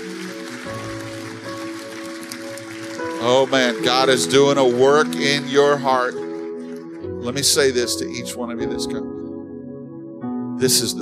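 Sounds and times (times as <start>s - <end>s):
audience hand clapping applause: 0.0s - 8.3s
speech: 3.2s - 6.2s, 7.2s - 9.1s, 10.6s - 11.0s.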